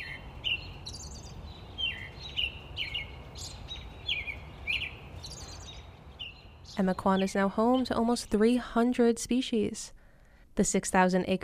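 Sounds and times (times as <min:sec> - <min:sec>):
low rumbling noise: 0:00.0 - 0:08.6
wetland birds chirping: 0:00.0 - 0:08.9
speech: 0:06.8 - 0:10.0, 0:10.6 - 0:11.4.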